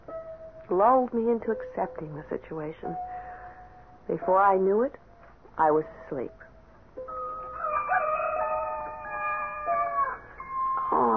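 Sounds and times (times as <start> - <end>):
speech: 0.7 - 3.2, 4.1 - 5.0, 5.6 - 6.4
rooster crowing: 7.1 - 10.5.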